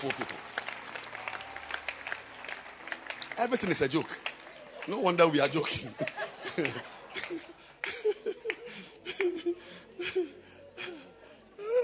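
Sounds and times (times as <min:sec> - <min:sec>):
speech: 0:00.0 - 0:00.5, 0:03.4 - 0:07.5
crowd clapping: 0:00.0 - 0:09.4
laughter: 0:04.4 - 0:11.8.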